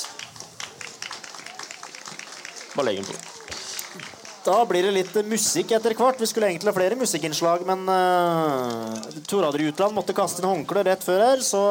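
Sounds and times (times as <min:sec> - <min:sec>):
crowd clapping: 0:00.0 - 0:07.0, 0:08.6 - 0:10.0
speech: 0:02.8 - 0:03.3, 0:03.9 - 0:11.7.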